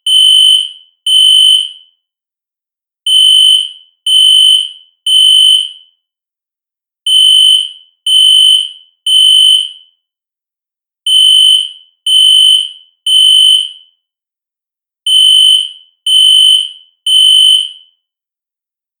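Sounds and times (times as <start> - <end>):
synth fire alarm with reverb: 0.1 - 2.0, 3.1 - 6.1, 7.1 - 10.1, 11.1 - 14.1, 15.1 - 18.1.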